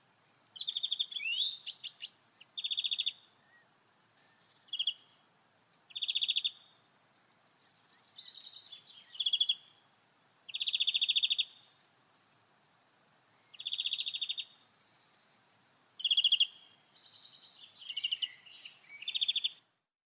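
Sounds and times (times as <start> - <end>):
European greenfinch singing: 0.6 - 3.6, 4.2 - 5.2, 5.9 - 6.7, 7.5 - 9.8, 10.5 - 11.9, 13.4 - 19.6.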